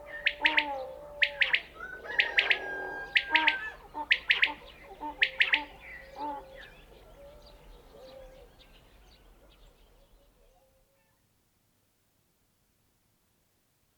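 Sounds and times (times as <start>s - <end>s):
common quail Coturnix coturnix calling in a mountain village: 0.0s - 7.0s.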